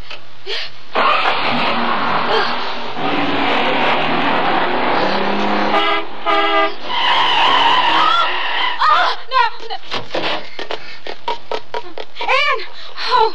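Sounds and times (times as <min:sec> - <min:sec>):
traffic noise: 0:00.0 - 0:13.3
car engine roaring: 0:00.9 - 0:09.2
wavering tire squeal of a swerving taxi: 0:00.9 - 0:09.2
car horn blaring: 0:03.0 - 0:08.0.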